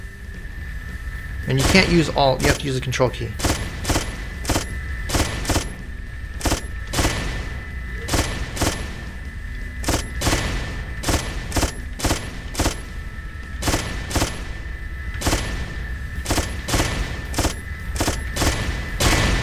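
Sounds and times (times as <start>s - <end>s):
steady noisy video game background: 0.0s - 19.4s
speech: 1.5s - 3.5s
machine gun fire in a video game: 1.6s - 2.7s, 3.4s - 5.8s, 6.4s - 9.1s, 9.8s - 13.0s, 13.6s - 14.6s, 15.2s - 19.4s.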